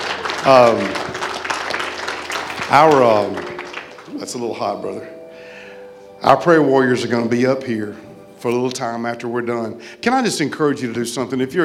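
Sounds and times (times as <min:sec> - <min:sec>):
crowd clapping: 0:00.0 - 0:05.0
speech: 0:00.4 - 0:01.0, 0:02.7 - 0:03.5, 0:04.1 - 0:05.2, 0:06.2 - 0:11.6.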